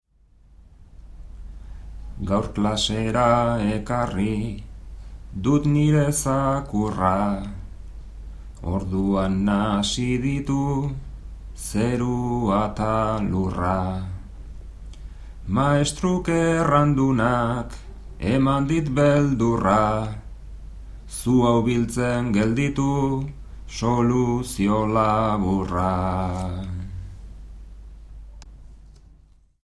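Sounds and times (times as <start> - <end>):
bertsos improvised verse singing: 2.1 - 7.7, 8.6 - 14.4, 15.4 - 20.4, 21.1 - 27.1.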